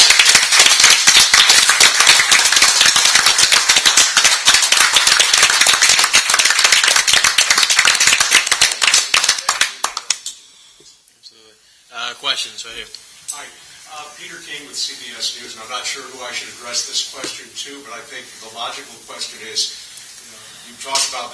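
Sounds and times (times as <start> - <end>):
audience applause: 0.0 - 10.2.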